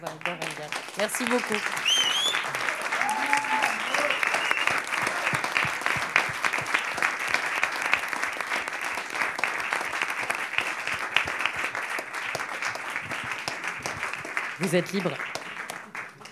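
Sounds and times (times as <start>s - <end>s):
speech: 0.0s - 1.9s, 14.6s - 15.3s
crowd applauding: 0.0s - 16.3s
person whooping: 1.9s - 4.8s.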